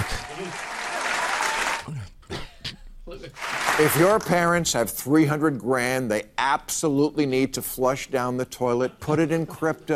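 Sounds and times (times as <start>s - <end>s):
audience applauding: 0.0s - 1.9s, 3.4s - 4.3s
speech: 3.8s - 9.9s.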